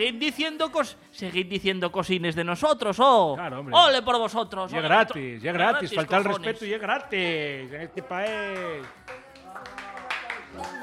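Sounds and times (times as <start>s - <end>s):
speech: 0.0s - 9.8s
clapping: 8.2s - 10.8s.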